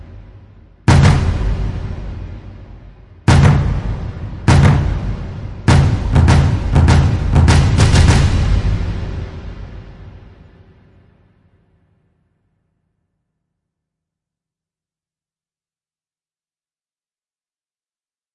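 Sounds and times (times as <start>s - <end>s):
drums playing: 0.9s - 2.7s, 3.3s - 10.3s.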